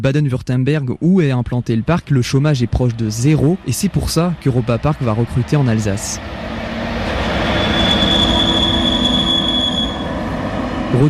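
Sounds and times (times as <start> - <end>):
speech: 0.0 - 6.6
train passing on the railway line at Sélestat: 1.5 - 11.0
train wheel squeal: 2.7 - 11.0.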